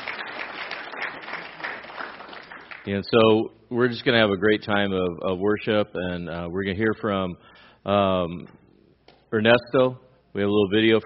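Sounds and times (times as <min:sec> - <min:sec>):
applause: 0:00.0 - 0:02.9
speech: 0:02.8 - 0:08.6, 0:09.3 - 0:11.0.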